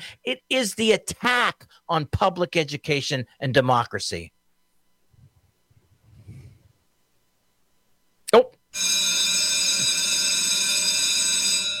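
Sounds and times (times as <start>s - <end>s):
speech: 0.0s - 4.4s, 8.3s - 9.1s
bell ringing: 8.8s - 11.7s.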